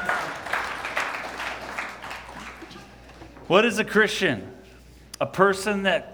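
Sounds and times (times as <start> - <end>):
audience clapping: 0.0 - 3.5
speech: 3.5 - 4.6, 5.2 - 6.1.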